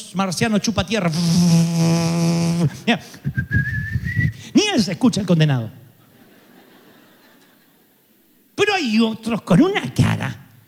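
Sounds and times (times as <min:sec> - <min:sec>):
speech: 0:00.1 - 0:05.8, 0:08.8 - 0:10.4
person whistling: 0:02.6 - 0:04.5
laughter: 0:03.0 - 0:04.0, 0:06.0 - 0:08.0.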